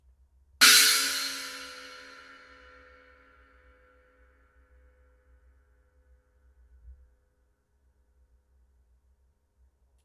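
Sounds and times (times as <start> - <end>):
Zildjian cymbal: 0.6 - 4.0.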